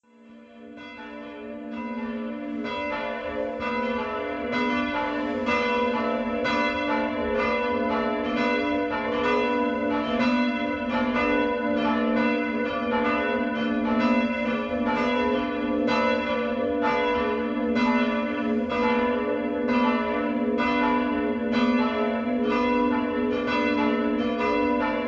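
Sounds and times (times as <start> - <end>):
bells of Graefenhausen ringing: 0.8 - 25.0.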